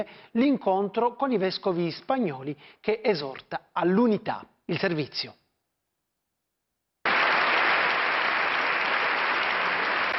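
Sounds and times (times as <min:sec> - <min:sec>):
speech: 0:00.0 - 0:05.4
thunderous applause in a parliament chamber: 0:07.0 - 0:10.1.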